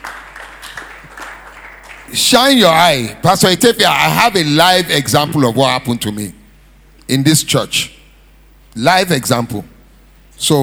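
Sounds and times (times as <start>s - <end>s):
audience clapping: 0.0s - 2.4s
speech: 2.1s - 6.4s, 7.1s - 8.0s, 8.8s - 9.7s, 10.4s - 10.6s.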